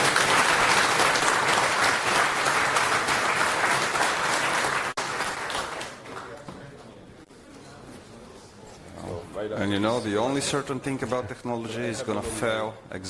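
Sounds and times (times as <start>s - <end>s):
audience applause: 0.0s - 6.4s
speech: 9.6s - 13.0s.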